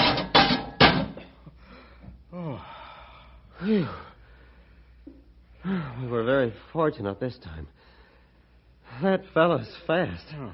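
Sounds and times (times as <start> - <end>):
cage door slamming shut: 0.0 - 1.2
speech: 3.6 - 4.0, 6.4 - 7.9, 9.0 - 10.5.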